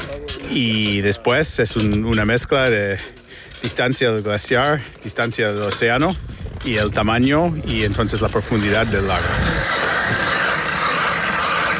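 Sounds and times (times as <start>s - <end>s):
speech: 0.2s - 9.8s
ice auger drilling through lake ice: 7.8s - 11.7s.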